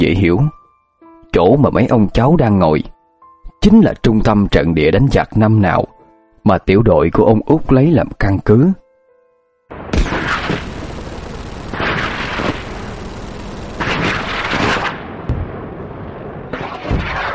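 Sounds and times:
speech: 0:00.0 - 0:00.6, 0:01.3 - 0:02.9, 0:03.6 - 0:08.8
gunfire: 0:09.8 - 0:15.8, 0:16.4 - 0:17.3.

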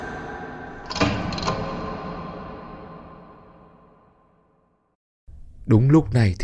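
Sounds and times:
wooden door latch rattling open: 0:00.8 - 0:02.0
speech: 0:05.7 - 0:06.4.

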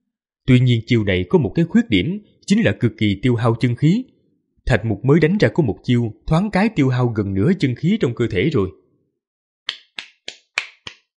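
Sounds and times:
speech: 0:00.5 - 0:04.1, 0:04.7 - 0:08.8
crisp hand clapping sound effect in an audiobook: 0:09.7 - 0:11.1.

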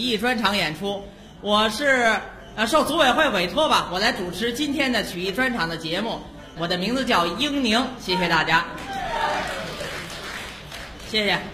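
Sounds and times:
speech: 0:00.0 - 0:09.6, 0:11.1 - 0:11.5
sparse audience applause at a Spring Festival folk-art performance at the Huguang Guild Hall: 0:08.8 - 0:11.1.

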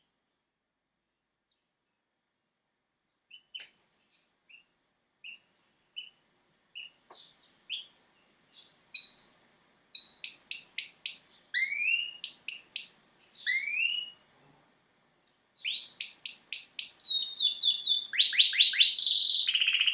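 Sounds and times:
domestic canary singing: 0:04.5 - 0:06.2, 0:06.8 - 0:14.2, 0:15.6 - 0:19.9.

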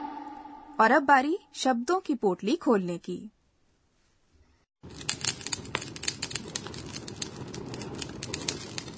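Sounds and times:
speech: 0:00.8 - 0:03.4
fire crackling: 0:04.8 - 0:08.9.

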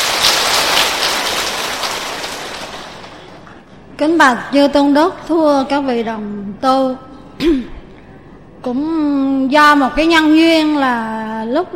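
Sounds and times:
audience applause: 0:00.0 - 0:03.5
speech: 0:04.0 - 0:07.8, 0:08.6 - 0:11.7.

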